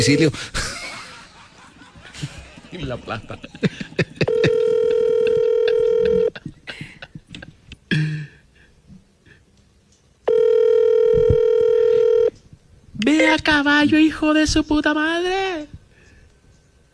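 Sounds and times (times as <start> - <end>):
speech: 0.0 - 0.7, 2.2 - 4.6, 13.3 - 15.7
laughter: 0.4 - 7.7
outgoing phone call ringback tones: 4.3 - 6.4, 10.3 - 12.3.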